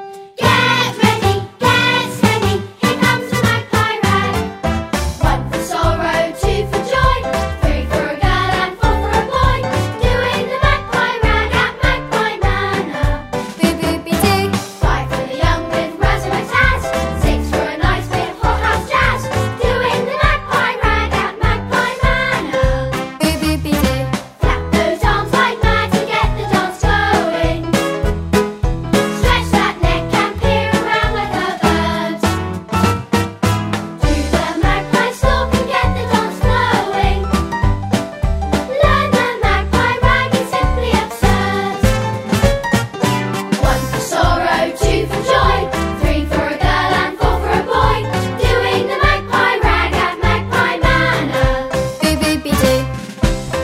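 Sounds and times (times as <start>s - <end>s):
ragtime piece: 0.4s - 53.6s.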